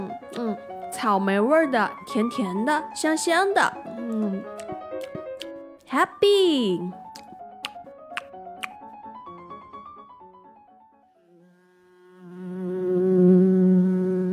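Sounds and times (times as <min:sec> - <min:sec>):
speech: 0:00.3 - 0:04.6, 0:05.9 - 0:07.0
bee buzzing: 0:11.3 - 0:13.8.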